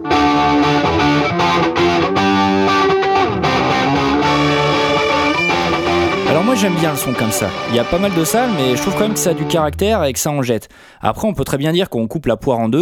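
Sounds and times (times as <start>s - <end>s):
electric guitar through distorted tube amp: 0.0s - 10.2s
speech: 6.6s - 12.7s.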